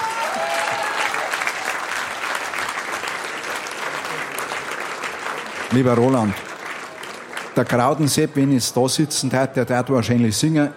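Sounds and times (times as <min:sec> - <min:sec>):
audience applause: 0:00.0 - 0:08.5
speech: 0:05.7 - 0:06.4, 0:07.6 - 0:10.7.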